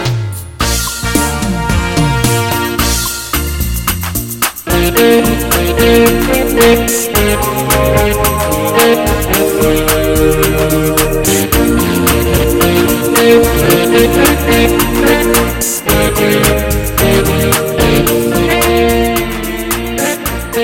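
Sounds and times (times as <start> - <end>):
hot Latin song: 0.0 - 20.6.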